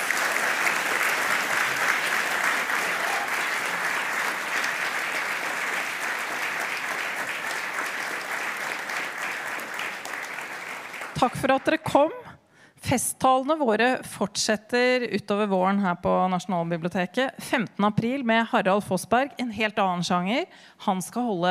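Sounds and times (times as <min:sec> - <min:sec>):
audience applause: 0:00.0 - 0:11.8
speech: 0:11.2 - 0:21.5.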